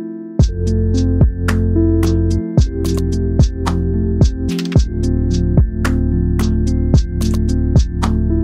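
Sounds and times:
jazz hip hop music: 0:00.4 - 0:08.2.

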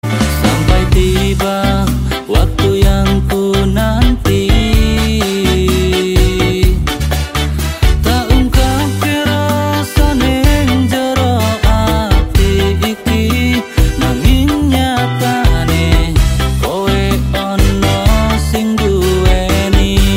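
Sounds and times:
ska music: 0:00.0 - 0:20.1.

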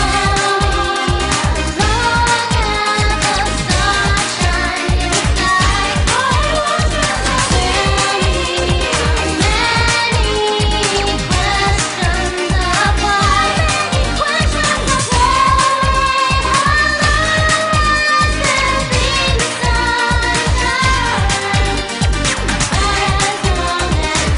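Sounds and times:
Latin freestyle music: 0:00.0 - 0:24.3.

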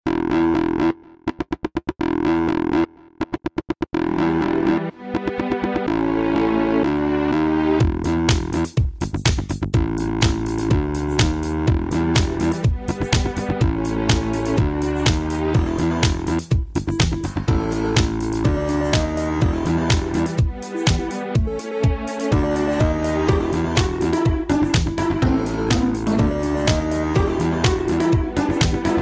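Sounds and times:
electro music: 0:00.1 - 0:29.0.

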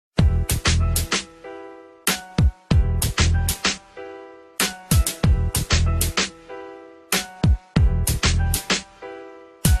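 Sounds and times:
music beat: 0:00.2 - 0:09.7.

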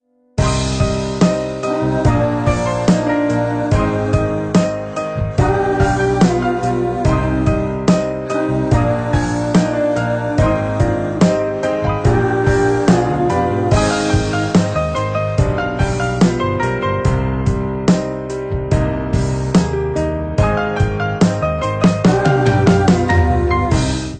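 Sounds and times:
sad music: 0:00.4 - 0:24.1.

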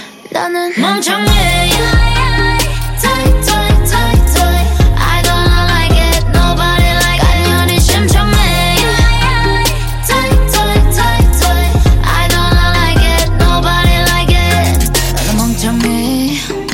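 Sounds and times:
chorus singing: 0:00.2 - 0:16.7.

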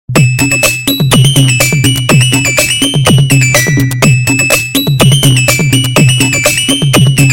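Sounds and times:
beat mix: 0:00.1 - 0:07.3.

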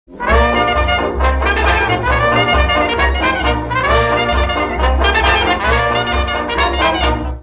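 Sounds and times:
big band: 0:00.1 - 0:07.4.

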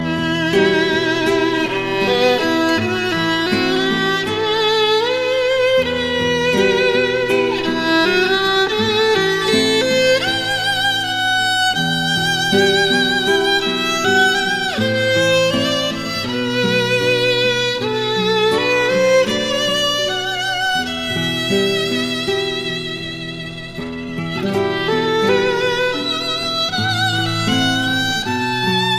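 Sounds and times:
violin: 0:00.0 - 0:28.9.

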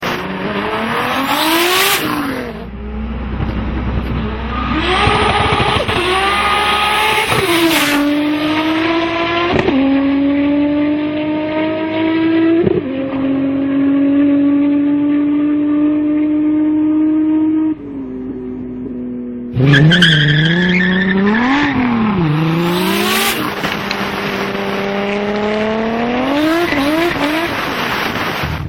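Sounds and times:
car: 0:00.0 - 0:28.6.

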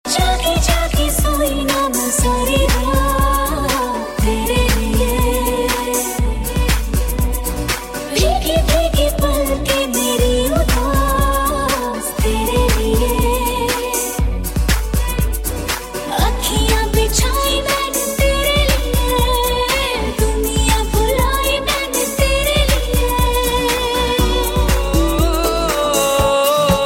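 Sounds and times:
hip hop music: 0:00.1 - 0:26.8.

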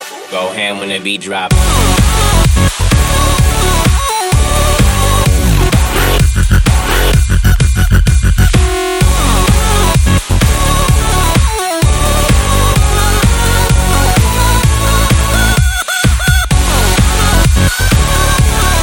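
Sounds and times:
distorted bass: 0:01.5 - 0:18.8.

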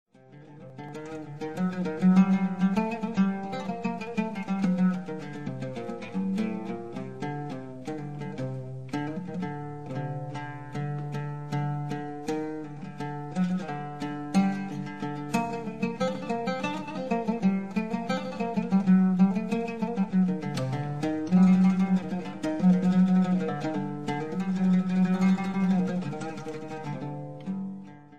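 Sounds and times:
solo oud: 0:00.1 - 0:28.1.

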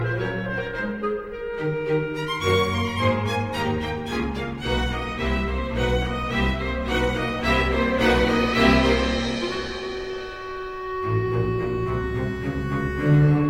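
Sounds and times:
cheerful music: 0:00.0 - 0:13.4.

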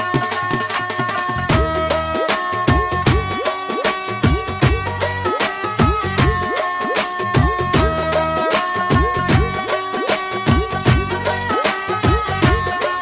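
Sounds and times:
cute beats: 0:00.2 - 0:13.0.

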